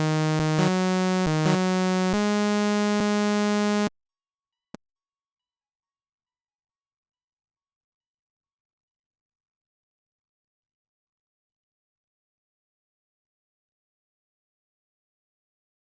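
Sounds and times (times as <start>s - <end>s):
wah-wah loop: 0.0s - 3.9s.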